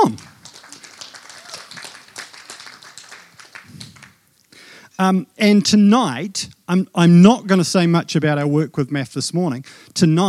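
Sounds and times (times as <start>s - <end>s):
audience clapping: 0.0s - 4.3s
speech: 5.0s - 10.2s.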